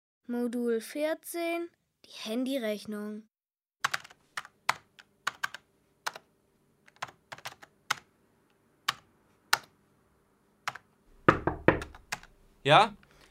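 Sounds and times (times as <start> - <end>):
speech: 0.3 - 3.3, 12.6 - 13.0
typing on a computer keyboard: 3.8 - 8.1, 8.9 - 9.7, 10.7 - 10.9, 11.8 - 12.3.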